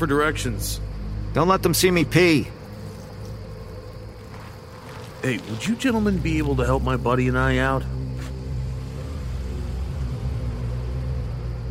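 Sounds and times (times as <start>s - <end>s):
speech: 0.0s - 2.6s, 5.2s - 8.0s
car engine rumble on a road: 0.0s - 11.7s.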